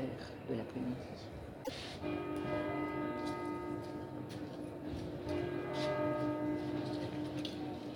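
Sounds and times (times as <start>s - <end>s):
speech: 0.5s - 2.6s
clock tower bells ringing the hour in Bologna: 2.0s - 7.9s.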